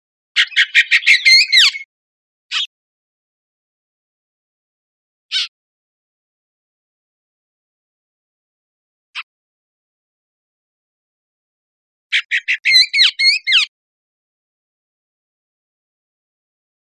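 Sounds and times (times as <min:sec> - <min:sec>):
Bullock's oriole chattering: 0:00.4 - 0:01.8, 0:12.1 - 0:13.7.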